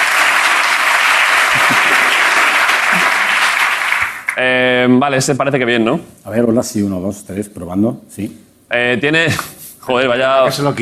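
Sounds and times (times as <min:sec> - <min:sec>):
audience applause: 0:00.0 - 0:04.4
speech: 0:04.4 - 0:10.8.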